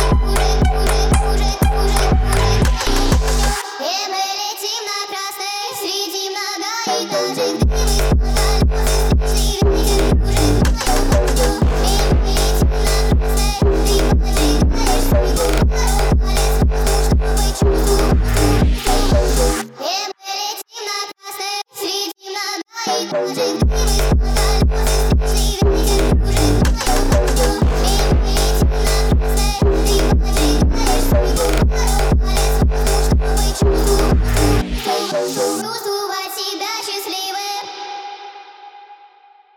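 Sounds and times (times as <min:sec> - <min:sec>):
phonk music: 0:00.0 - 0:04.4, 0:06.8 - 0:19.9, 0:22.9 - 0:36.2.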